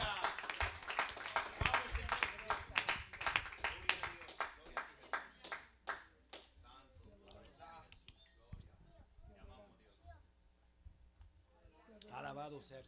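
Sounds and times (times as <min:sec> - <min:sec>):
congregation applauding in a bilingual church service: 0:00.0 - 0:06.1.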